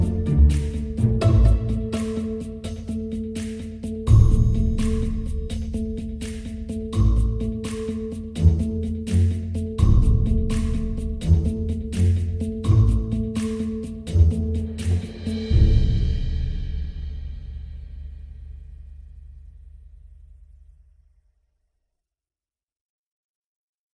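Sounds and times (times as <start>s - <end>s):
end of game suspense music: 0.0s - 18.9s.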